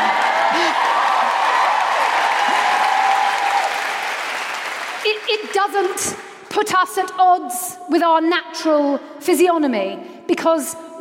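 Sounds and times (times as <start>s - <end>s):
audience cheering and clapping: 0.0s - 6.0s
speech: 5.7s - 11.0s.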